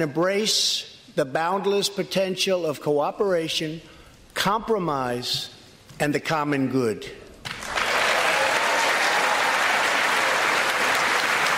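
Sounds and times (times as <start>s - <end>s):
speech: 0.0s - 7.2s
audience applause after a speech line: 7.5s - 11.5s.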